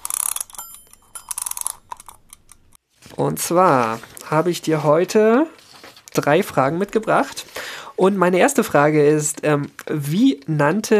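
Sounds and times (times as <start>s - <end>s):
alarm clock being wound: 0.0s - 2.8s
speech: 3.2s - 5.6s, 6.2s - 10.9s.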